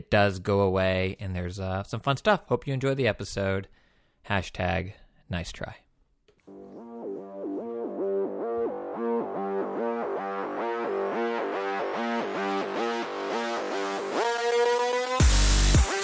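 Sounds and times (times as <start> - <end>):
speech: 0.0 - 5.8
pulsing electronic intro music: 6.5 - 16.0.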